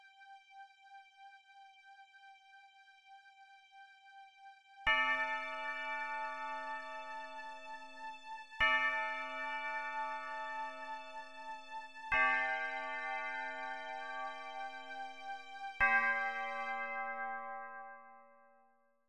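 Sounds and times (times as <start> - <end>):
chimes: 4.9 - 18.6.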